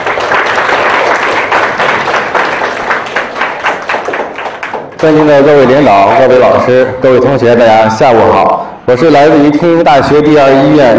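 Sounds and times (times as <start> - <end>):
audience applause welcoming a speaker: 0.0 - 5.2
speech: 5.0 - 10.9.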